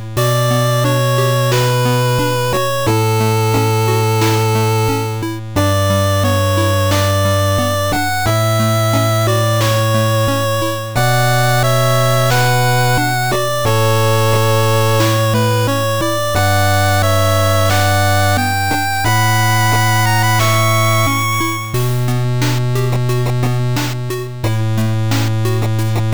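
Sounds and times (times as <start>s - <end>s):
8-bit music: 0.2s - 26.1s.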